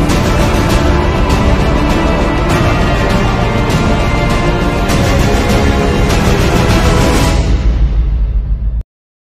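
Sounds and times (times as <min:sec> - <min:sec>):
dramatic tone: 0:00.0 - 0:08.8.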